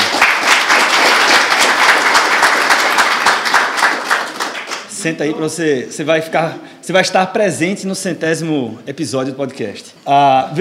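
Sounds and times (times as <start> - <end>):
audience applause: 0.0 - 4.9
speech: 5.0 - 10.5.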